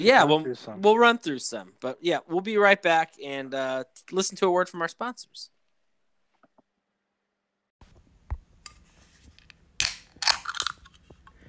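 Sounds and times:
speech: 0:00.0 - 0:05.6
can of cold brew coffee being cracked open: 0:09.8 - 0:11.0.

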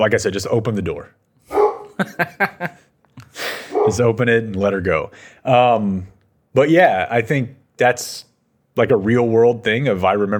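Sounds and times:
speech: 0:00.0 - 0:01.2, 0:02.0 - 0:02.8, 0:03.8 - 0:10.3
dog whining: 0:01.5 - 0:02.0, 0:03.7 - 0:04.0
dog barking: 0:01.5 - 0:02.1, 0:03.7 - 0:04.1
laughter: 0:01.8 - 0:02.9.

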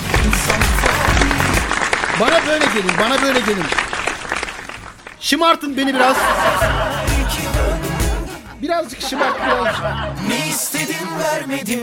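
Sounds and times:
applause: 0:00.0 - 0:05.3
speech: 0:02.2 - 0:03.8, 0:05.2 - 0:07.4, 0:08.6 - 0:11.8
laughter: 0:05.5 - 0:11.5.

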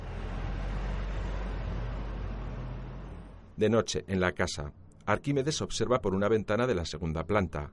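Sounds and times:
car passing on an empty street at night: 0:00.0 - 0:03.6
speech: 0:03.6 - 0:07.7.

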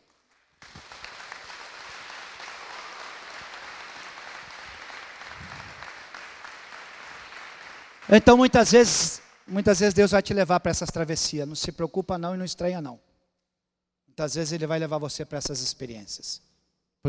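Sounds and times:
audience applauding: 0:00.0 - 0:09.7
speech: 0:08.1 - 0:13.1, 0:14.2 - 0:17.0.

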